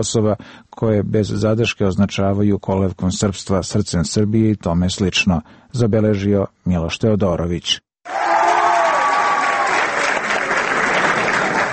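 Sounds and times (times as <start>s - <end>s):
speech: 0.0s - 8.3s
audience applause greeting Ambassador Dezer: 8.1s - 11.7s.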